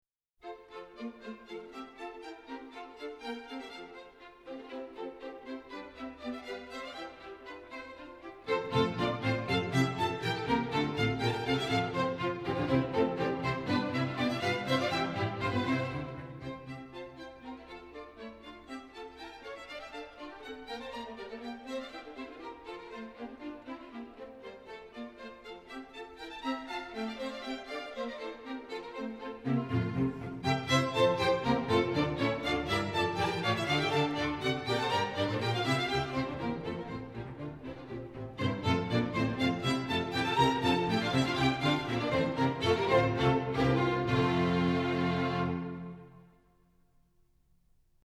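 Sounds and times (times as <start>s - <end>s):
baroque bourree: 0.4s - 46.4s.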